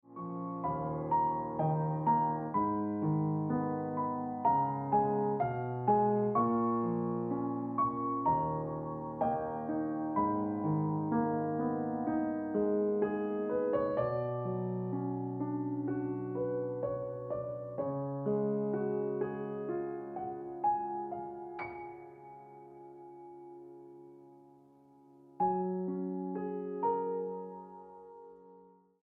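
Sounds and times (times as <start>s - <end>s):
piano music: 0.0s - 28.8s.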